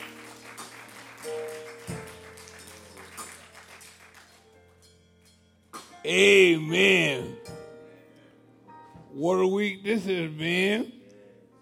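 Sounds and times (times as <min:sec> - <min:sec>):
audience hand clapping: 0:00.0 - 0:04.8
speech: 0:06.0 - 0:07.4, 0:09.2 - 0:11.0.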